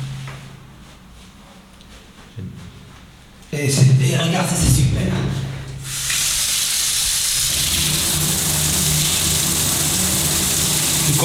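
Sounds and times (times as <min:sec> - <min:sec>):
speech: 0:02.4 - 0:02.8, 0:03.6 - 0:05.4
shower running with hot water: 0:05.8 - 0:11.2.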